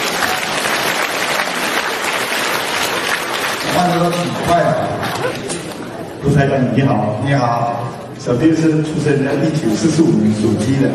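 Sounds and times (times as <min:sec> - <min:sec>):
audience applause: 0:00.0 - 0:05.9
speech: 0:03.8 - 0:05.6, 0:06.2 - 0:10.9.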